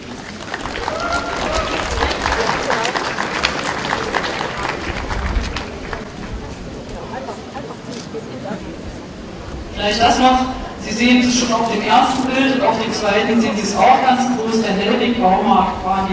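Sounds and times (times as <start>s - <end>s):
audience applause: 0.0s - 7.4s
speech: 9.8s - 16.1s.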